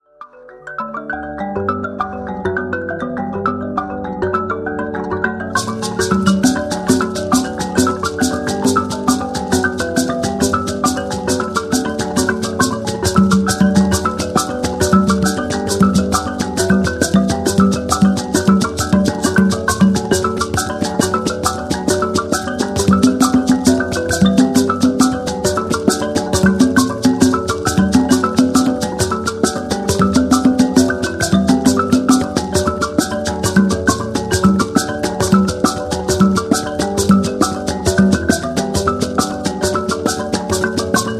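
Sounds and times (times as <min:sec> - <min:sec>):
mbira: 0:00.0 - 0:41.1.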